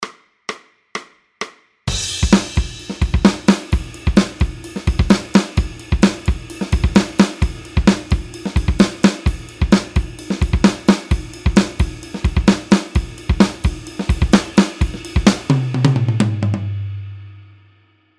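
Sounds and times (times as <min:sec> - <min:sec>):
drum: 0:00.0 - 0:17.3.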